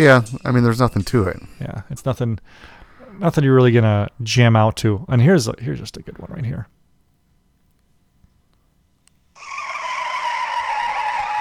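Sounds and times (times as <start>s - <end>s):
speech: 0.0s - 6.7s
tires screeching: 9.4s - 11.3s.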